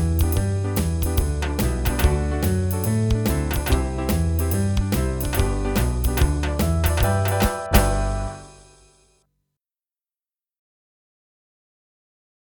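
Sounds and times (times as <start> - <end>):
boogie backing track: 0.0 - 8.8.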